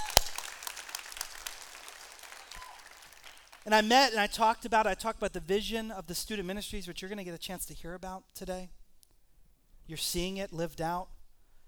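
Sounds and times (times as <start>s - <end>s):
audience applause: 0.0s - 3.7s
speech: 3.6s - 8.8s, 9.9s - 11.2s.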